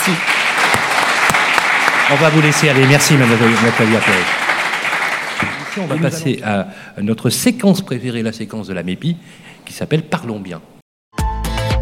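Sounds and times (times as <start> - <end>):
speech: 0.0 - 0.4, 2.1 - 4.5, 5.8 - 10.7
audience applause: 0.0 - 6.3.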